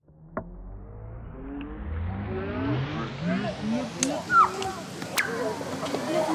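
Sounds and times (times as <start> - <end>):
field recording ambience: 0.1 - 6.2.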